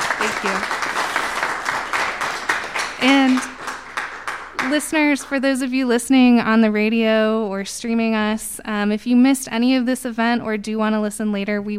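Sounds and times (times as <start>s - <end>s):
small live audience applause: 0.0s - 5.4s
speech: 4.7s - 11.7s.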